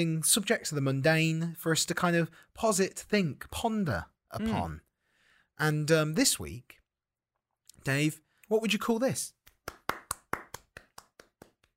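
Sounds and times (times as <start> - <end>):
speech: 0.0 - 4.8, 5.6 - 6.8, 7.8 - 9.4
hand clapping: 9.3 - 11.7.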